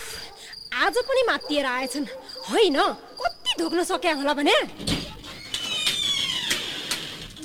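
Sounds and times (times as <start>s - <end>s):
speech: 0.8s - 5.0s
door creaking open: 4.6s - 7.4s.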